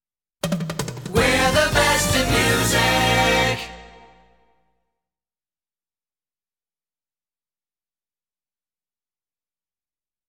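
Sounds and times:
music jingle: 0:01.1 - 0:04.4.

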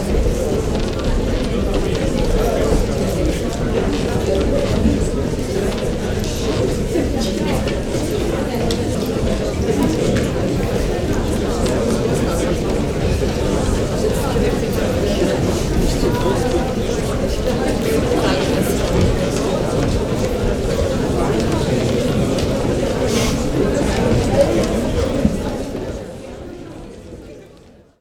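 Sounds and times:
crowd entering an interior room: 0:00.0 - 0:27.9.

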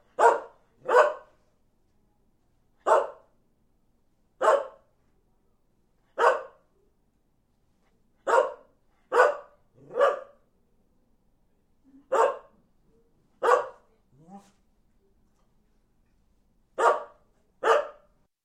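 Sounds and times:
terrier barking: 0:00.0 - 0:01.4, 0:02.8 - 0:03.3, 0:04.4 - 0:04.9, 0:06.1 - 0:06.6, 0:08.2 - 0:10.4, 0:12.1 - 0:12.6, 0:13.4 - 0:14.5, 0:16.8 - 0:18.1.

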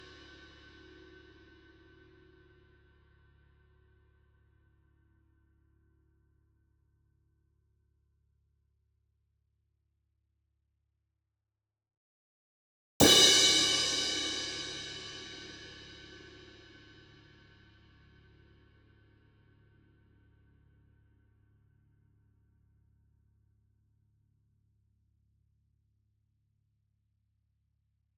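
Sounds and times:
crash cymbal hit hard with a beater: 0:13.0 - 0:16.4.

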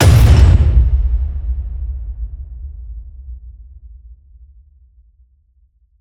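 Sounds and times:
designed cinematic slam hit: 0:00.0 - 0:03.1.

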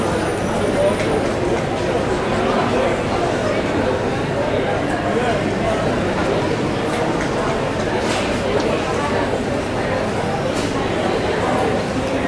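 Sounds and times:
indoor crowd murmur near a mall food court: 0:00.0 - 0:12.2.

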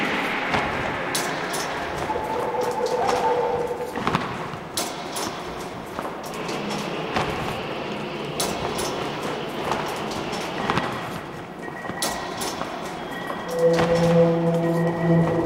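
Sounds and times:
construction site ambience: 0:00.0 - 0:15.4.

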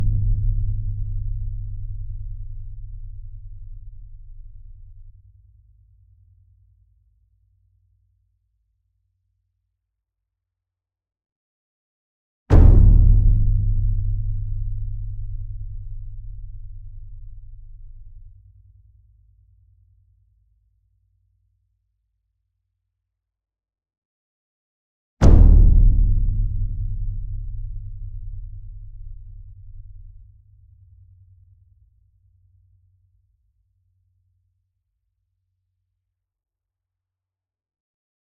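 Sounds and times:
large concert bass drum hit: 0:00.0 - 0:05.0, 0:12.5 - 0:18.2, 0:25.2 - 0:30.4.

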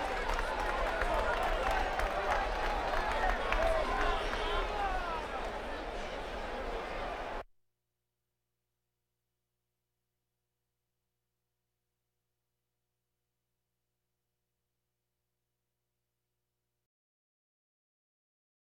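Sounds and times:
crowds: 0:00.0 - 0:07.4.

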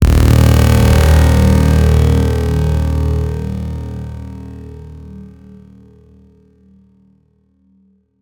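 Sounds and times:
designed sci-fi cinematic hits: 0:00.0 - 0:04.3.

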